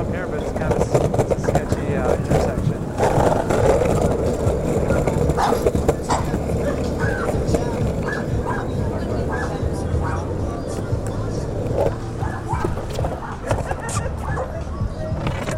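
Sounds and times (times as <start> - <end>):
skate wheels rumbling on city pavement: 0.0 - 15.5
voices talking: 0.0 - 15.5
laughter: 1.6 - 15.3
dog barking: 4.8 - 10.4, 12.2 - 15.2.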